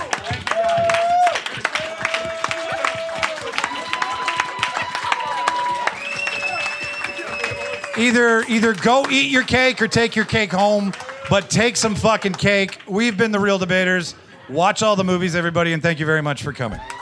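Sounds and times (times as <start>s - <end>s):
audience round of applause: 0.0s - 12.9s
speech: 8.0s - 17.0s.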